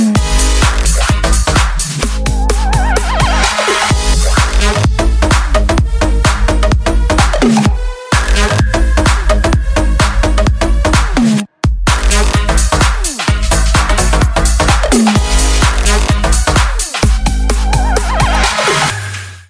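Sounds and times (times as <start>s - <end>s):
musical chords: 0.2s - 11.0s, 12.1s - 19.0s.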